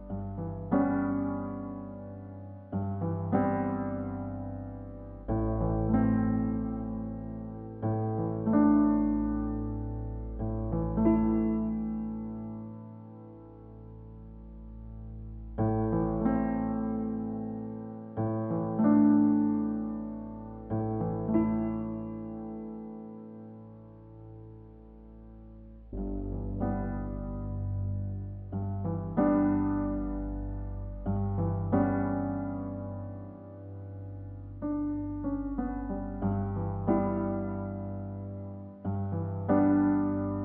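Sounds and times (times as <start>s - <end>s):
simple piano piece: 0.0s - 40.4s.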